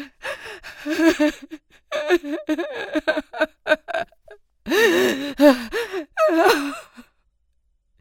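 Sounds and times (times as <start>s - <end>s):
person crying: 0.9s - 7.0s.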